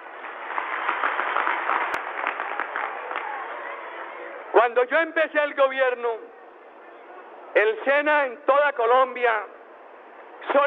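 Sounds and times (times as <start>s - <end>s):
applause: 0.0s - 4.1s
speech: 4.6s - 6.3s, 7.6s - 9.6s, 10.4s - 10.6s.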